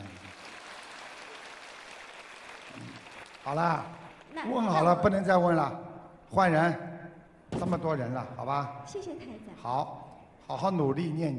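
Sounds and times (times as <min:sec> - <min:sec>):
audience applause: 0:00.0 - 0:04.6
speech: 0:03.4 - 0:06.9, 0:07.6 - 0:11.3.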